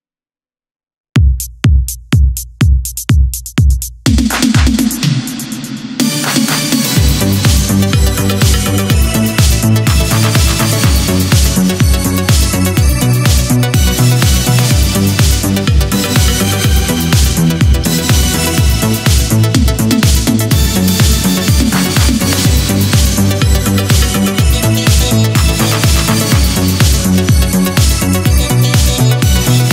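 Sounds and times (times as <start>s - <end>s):
eurodance italo disco dub mix: 1.2s - 29.7s.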